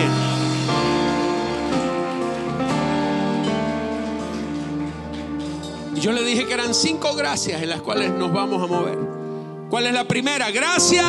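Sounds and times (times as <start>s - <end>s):
audience applause: 0.0s - 6.7s
speech: 6.0s - 11.0s.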